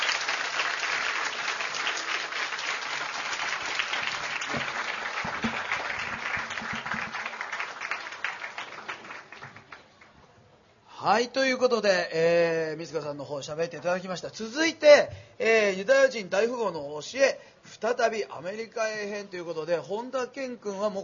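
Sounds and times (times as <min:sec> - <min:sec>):
audience applause: 0:00.0 - 0:10.1
speech: 0:11.0 - 0:21.0.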